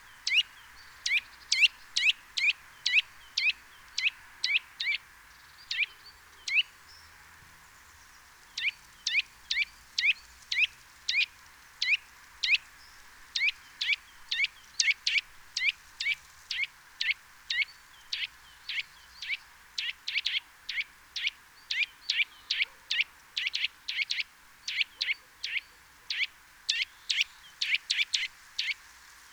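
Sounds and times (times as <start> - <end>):
faint hiss: 0.0 - 29.3
Eurasian nuthatch calling: 13.4 - 28.8.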